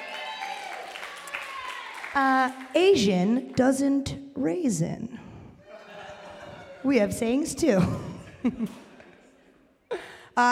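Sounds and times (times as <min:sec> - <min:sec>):
cheers: 0:00.0 - 0:02.2
audience clapping: 0:00.0 - 0:02.8
speech: 0:02.1 - 0:05.2, 0:06.8 - 0:08.8, 0:10.4 - 0:10.5
laughter: 0:05.6 - 0:09.7.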